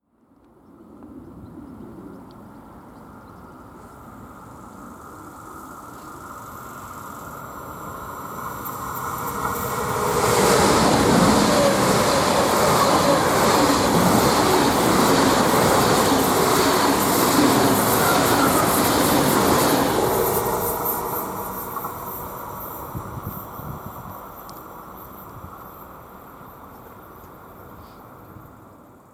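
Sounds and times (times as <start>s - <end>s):
Deutsche Bahn train sound: 3.6s - 29.1s.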